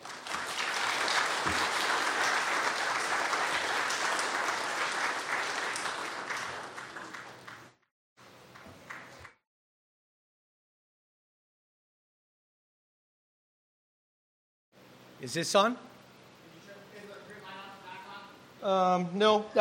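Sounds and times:
church congregation at Woodland Christian Church applauding a guest: 0:00.0 - 0:07.8, 0:08.5 - 0:09.4
speech: 0:15.2 - 0:15.9, 0:18.6 - 0:19.5.

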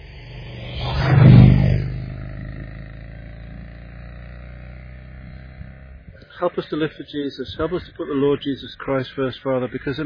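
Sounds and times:
classic car engine rumbling past: 0:00.0 - 0:06.8
speech: 0:06.4 - 0:10.0.

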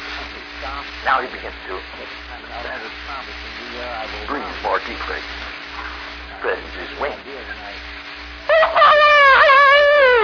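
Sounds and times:
low hum: 0:00.0 - 0:10.2
speech: 0:00.6 - 0:07.9
rooster crowing: 0:08.5 - 0:10.2.

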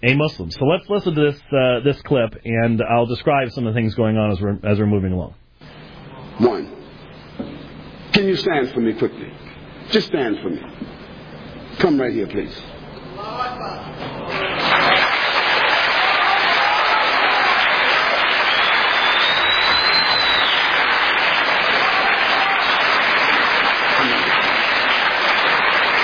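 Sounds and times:
speech: 0:00.0 - 0:05.4, 0:06.4 - 0:06.8, 0:08.4 - 0:11.0, 0:11.8 - 0:14.2
crowd yelling Allahu Akbar: 0:14.2 - 0:26.0.

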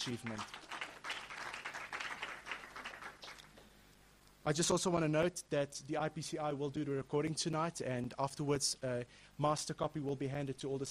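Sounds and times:
speech: 0:00.0 - 0:00.6, 0:04.4 - 0:10.9
audience applause: 0:00.0 - 0:03.5.

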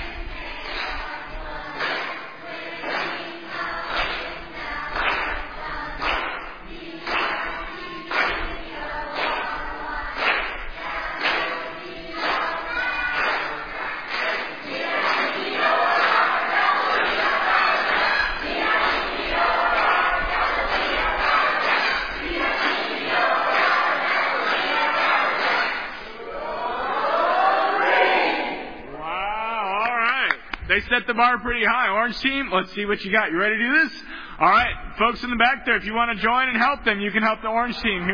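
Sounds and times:
large group cheering and chanting: 0:00.0 - 0:33.0
clapping: 0:01.7 - 0:02.2, 0:02.8 - 0:25.9, 0:29.8 - 0:30.7
speech: 0:30.8 - 0:38.1.

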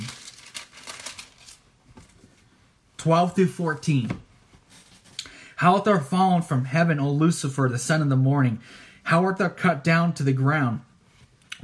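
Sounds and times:
thin Bible pages rustling as they are turned: 0:00.0 - 0:02.5, 0:04.5 - 0:05.2
speech: 0:03.0 - 0:04.3, 0:05.6 - 0:10.9.

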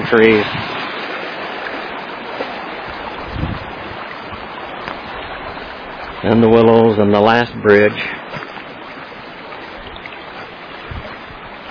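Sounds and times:
creek water flowing: 0:00.0 - 0:11.6
speech: 0:00.1 - 0:00.7, 0:06.2 - 0:08.4.

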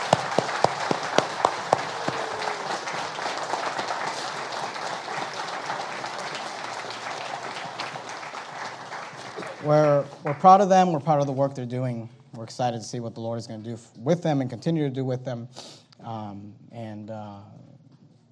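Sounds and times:
audience applause: 0:00.0 - 0:10.6
speech: 0:09.6 - 0:17.3.

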